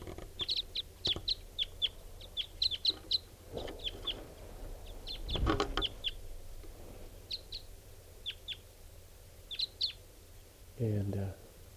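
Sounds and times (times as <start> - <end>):
rustling bursts: 0.0 - 8.2
birds calling with short, high chirps: 0.0 - 11.7
low thumps: 3.5 - 7.2.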